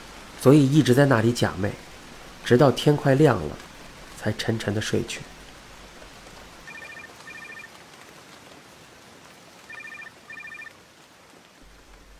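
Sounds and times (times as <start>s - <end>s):
hiss: 0.0s - 7.7s, 9.6s - 12.1s
speech: 0.4s - 3.6s, 4.2s - 5.3s
telephone ringing: 6.6s - 7.7s, 9.7s - 10.8s.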